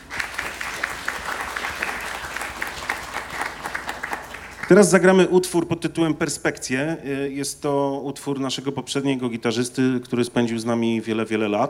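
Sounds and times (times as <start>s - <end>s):
audience applause: 0.0s - 5.2s
speech: 4.7s - 11.6s.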